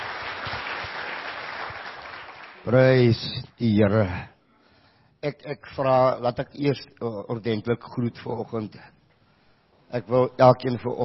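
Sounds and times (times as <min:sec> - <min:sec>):
church congregation applauding: 0:00.0 - 0:03.2
speech: 0:02.6 - 0:04.3, 0:05.2 - 0:08.9, 0:09.9 - 0:11.0.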